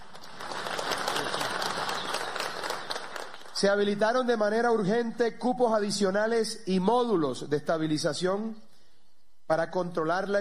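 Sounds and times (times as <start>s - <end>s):
audience applause: 0.0s - 3.6s
speech: 3.6s - 8.7s, 9.5s - 10.3s.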